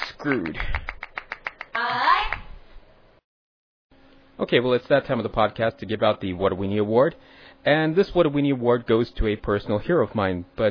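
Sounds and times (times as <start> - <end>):
person clapping alone: 0.0 - 2.4
speech: 0.2 - 0.9, 4.4 - 10.6.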